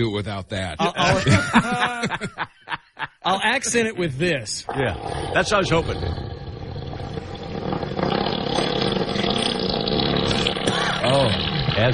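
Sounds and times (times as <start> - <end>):
speech: 0.0 - 6.4, 11.1 - 11.9
laughter: 0.8 - 3.2
elephant fart: 4.7 - 11.9.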